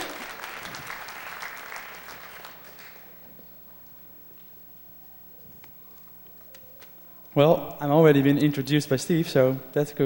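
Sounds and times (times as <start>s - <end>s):
audience applause: 0.0s - 3.2s
speech: 7.4s - 10.0s.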